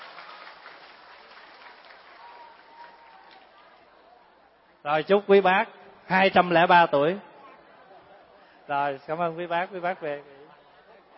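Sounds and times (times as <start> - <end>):
audience applause at a Buddhist Vu Lan gathering in a monastery: 0.0 - 3.8
speech: 4.8 - 7.3, 8.7 - 10.4.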